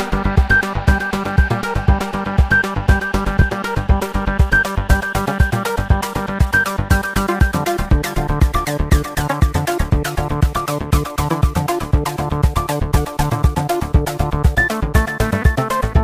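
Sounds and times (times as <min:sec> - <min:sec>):
synthesizer sequences: 0:00.0 - 0:16.0.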